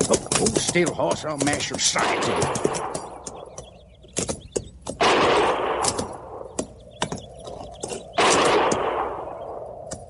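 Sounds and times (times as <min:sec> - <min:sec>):
speech: 0:00.4 - 0:03.1
distant gunfire: 0:01.8 - 0:03.6, 0:05.0 - 0:06.6, 0:08.1 - 0:09.6.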